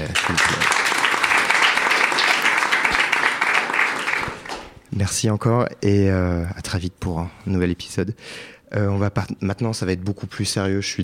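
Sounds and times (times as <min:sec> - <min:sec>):
audience applause: 0:00.0 - 0:04.8
speech: 0:05.1 - 0:11.0.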